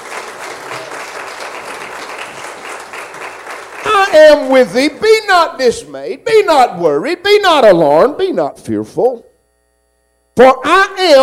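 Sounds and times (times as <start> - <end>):
audience hand clapping: 0.0 - 5.0
speech: 4.1 - 9.3, 10.4 - 11.2.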